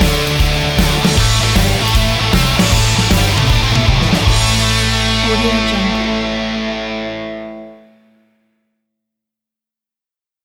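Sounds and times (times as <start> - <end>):
rock music: 0.0 - 8.2.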